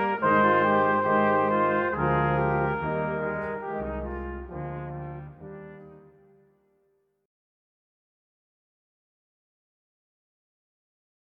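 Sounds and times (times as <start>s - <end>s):
brass quintet playing: 0.0s - 6.4s.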